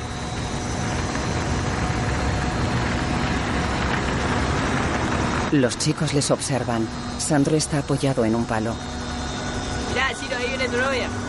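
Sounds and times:
car driving on dirt road: 0.0s - 6.3s
speech: 5.5s - 9.0s, 10.0s - 11.2s.

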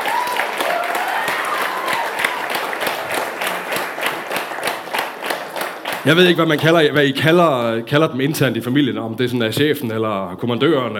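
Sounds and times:
audience applause in a church: 0.0s - 6.6s
speech: 6.0s - 10.9s.

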